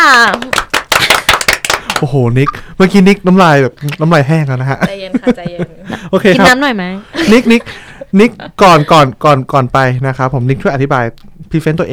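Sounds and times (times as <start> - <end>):
people clapping hands: 0.0 - 2.3
speech: 2.0 - 11.9
laughter: 4.8 - 9.2.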